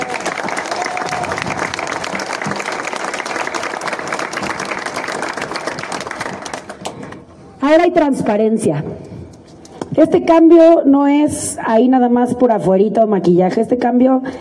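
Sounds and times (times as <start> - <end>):
audience applause: 0.0 - 7.2
speech: 7.7 - 9.0, 10.0 - 14.3.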